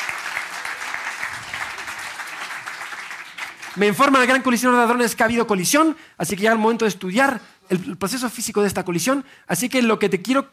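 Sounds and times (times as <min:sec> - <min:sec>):
audience applause: 0:00.0 - 0:04.4
speech: 0:03.8 - 0:10.5.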